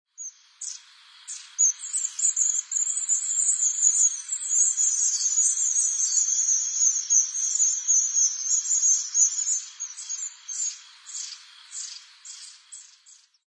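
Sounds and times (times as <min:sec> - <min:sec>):
Long-tailed Tit: 0:00.1 - 0:13.4.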